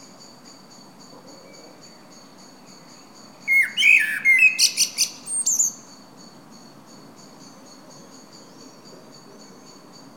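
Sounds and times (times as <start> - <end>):
common blackbird phrase: 2.8 - 5.9.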